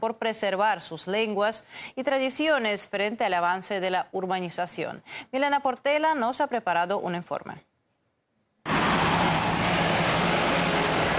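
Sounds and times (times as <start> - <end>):
speech: 0.0 - 7.7
distant highway car traffic: 8.7 - 11.1.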